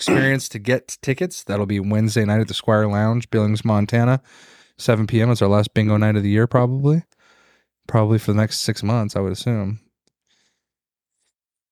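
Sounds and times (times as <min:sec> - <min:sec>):
person coughing: 0:00.0 - 0:00.5
speech: 0:00.0 - 0:07.2, 0:07.9 - 0:09.8.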